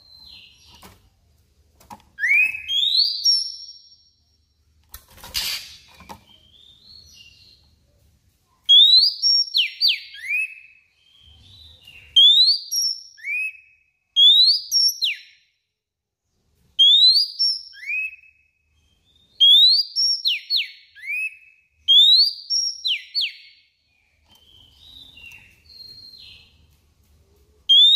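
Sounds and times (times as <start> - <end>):
Oriental magpie-robin singing clear high whistled notes: 2.2 - 4.3, 8.7 - 15.5, 16.8 - 26.6, 27.6 - 27.9.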